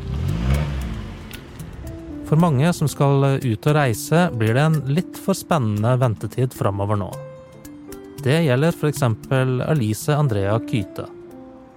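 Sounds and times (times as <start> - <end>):
car engine revving while parking in a hurry: 0.0 - 2.8
speech: 2.3 - 7.3, 8.2 - 11.2.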